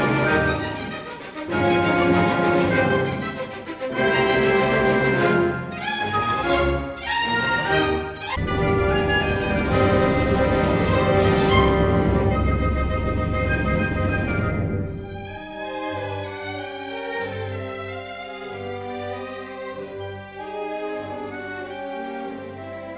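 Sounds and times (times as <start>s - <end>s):
orchestra playing: 0.0s - 22.9s
thunderstorm: 8.4s - 15.5s.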